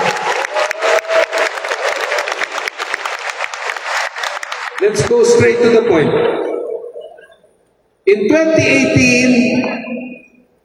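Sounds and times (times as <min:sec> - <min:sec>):
audience applause at an event for Para Asian Games athletes: 0:00.0 - 0:05.2
speech: 0:04.9 - 0:06.5, 0:08.1 - 0:09.8.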